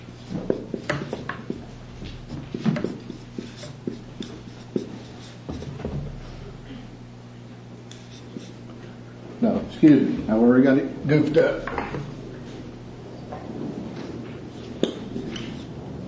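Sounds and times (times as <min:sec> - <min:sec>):
expression being written up on a board, scratchy strokes and light taps: 0:00.2 - 0:05.9, 0:07.9 - 0:08.7, 0:14.6 - 0:15.8
speech: 0:09.8 - 0:12.0.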